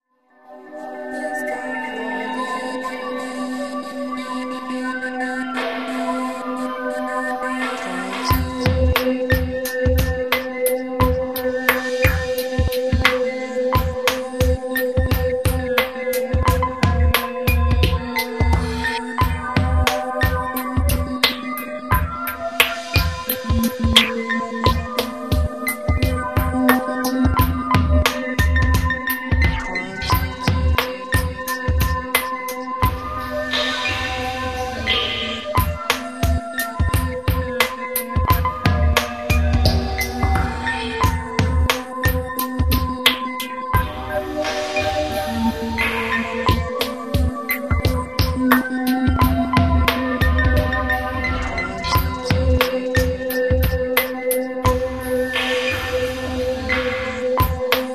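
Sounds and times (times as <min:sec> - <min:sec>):
lullaby: 0:00.5 - 0:57.9.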